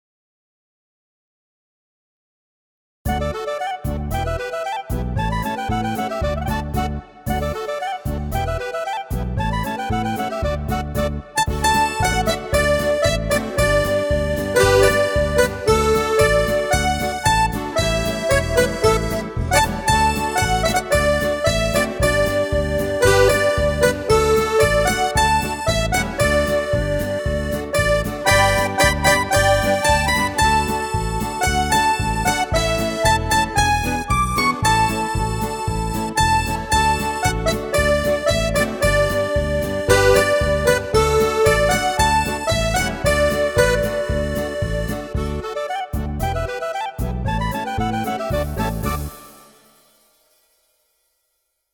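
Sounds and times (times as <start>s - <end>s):
polka music: 3.1s - 49.8s.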